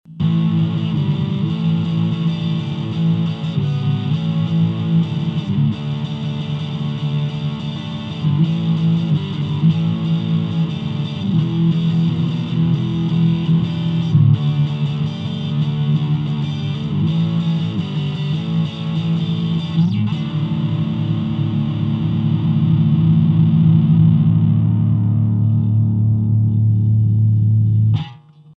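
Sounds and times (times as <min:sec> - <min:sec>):
the t.bone RB 100 electric guitar with distortion: 0:00.1 - 0:28.5.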